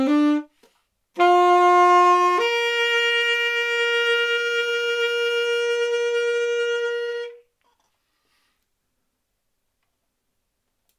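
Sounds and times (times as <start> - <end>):
saxophone: 0.0 - 7.6.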